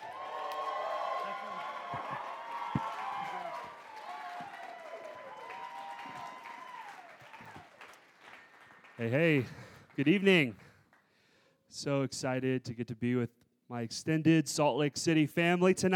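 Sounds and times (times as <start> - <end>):
crowd whooping: 0.0 - 8.0
applause greeting a speaker at a Salt Lake City revival gathering: 0.0 - 10.3
speech: 9.0 - 10.7, 11.7 - 15.9.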